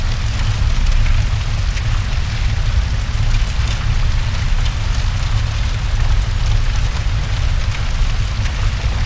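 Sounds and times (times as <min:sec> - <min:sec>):
hell fire blaze crackling: 0:00.0 - 0:09.0.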